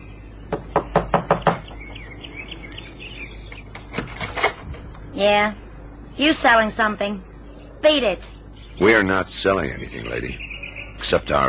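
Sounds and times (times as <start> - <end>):
faint bird chirping: 0.0 - 11.4
quick firm knocks on a door: 0.5 - 2.0
speech: 5.2 - 5.6, 6.2 - 11.4.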